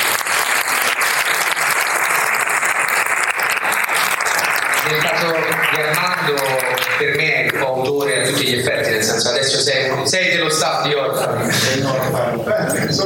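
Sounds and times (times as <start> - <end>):
audience applause: 0.0 - 8.0
speech: 4.9 - 13.0.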